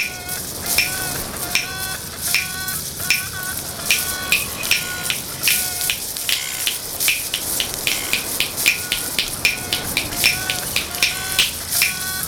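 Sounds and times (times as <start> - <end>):
seabirds calling: 0.0 - 12.2.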